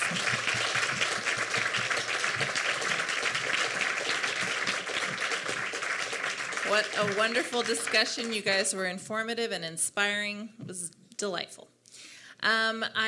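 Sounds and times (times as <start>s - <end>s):
audience applause: 0.0s - 8.5s
speech: 6.7s - 11.7s, 12.4s - 13.0s.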